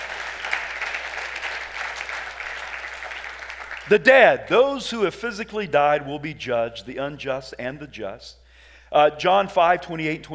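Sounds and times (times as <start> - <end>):
audience clapping: 0.0 - 4.5
speech: 3.9 - 10.3.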